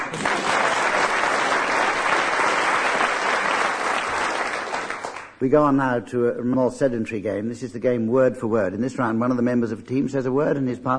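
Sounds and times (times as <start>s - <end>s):
audience applause for the winning team of a comedy panel game: 0.0s - 5.4s
speech: 5.4s - 10.9s.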